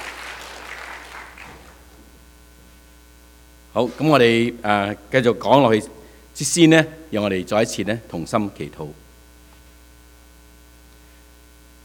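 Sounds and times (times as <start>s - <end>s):
audience applauding: 0.0s - 1.9s
speech: 3.8s - 9.0s.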